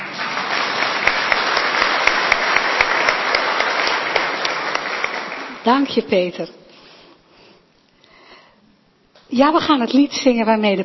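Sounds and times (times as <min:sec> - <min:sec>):
audience applause after a music piece: 0:00.0 - 0:05.9
speech: 0:05.6 - 0:06.6, 0:09.4 - 0:10.8.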